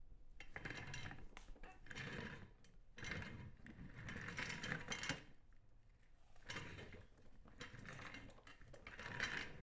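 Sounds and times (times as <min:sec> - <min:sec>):
chair rolling on tiles: 0:00.4 - 0:05.4, 0:06.4 - 0:09.6.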